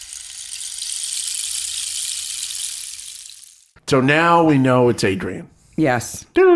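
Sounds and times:
rain stick sound effect: 0.0 - 3.8
speech: 3.9 - 6.5.

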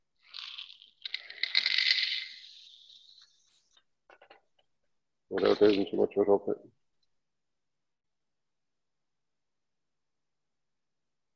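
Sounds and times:
fertiliser granules pouring into a graduated cylinder cut off at the litre mark: 0.2 - 3.5
clicks of settling fertiliser grains: 0.2 - 3.9
speech: 5.3 - 6.8.

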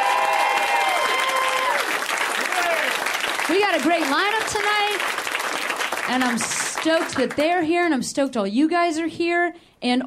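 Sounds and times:
faint cheers and whoops: 0.0 - 3.0
crowd applauding: 0.0 - 7.6
speech: 3.5 - 5.2, 6.1 - 10.0.

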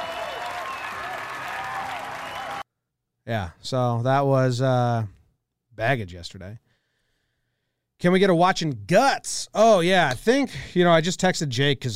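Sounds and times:
crowd erupting in applause: 0.0 - 2.6
whistles: 0.0 - 2.6
speech: 3.2 - 5.2, 5.8 - 6.6, 8.0 - 11.9.

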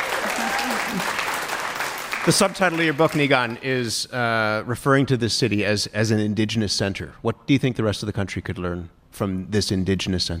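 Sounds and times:
faint voices cheering: 0.0 - 1.1
audience applause: 0.0 - 3.6
speech: 0.9 - 1.2, 2.2 - 10.3.

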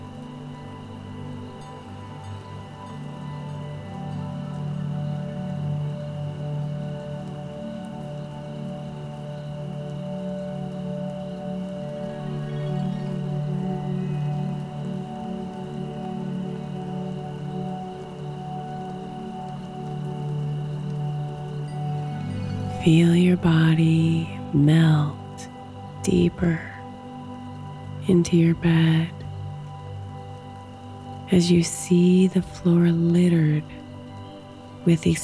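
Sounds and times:
low, sustained tonal drone: 0.0 - 35.2
rain falling: 0.0 - 35.2
speech: 22.8 - 25.2, 26.0 - 26.7, 28.1 - 29.2, 31.3 - 33.8, 34.8 - 35.2.

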